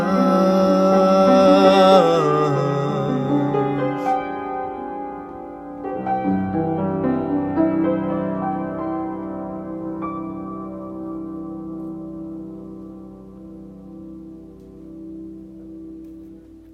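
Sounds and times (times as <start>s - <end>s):
acoustic piano: 0.0s - 16.7s.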